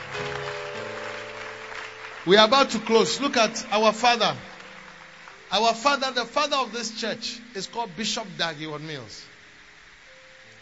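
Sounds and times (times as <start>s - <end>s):
clapping: 0.0s - 6.1s
speech: 2.2s - 4.5s, 5.5s - 9.3s.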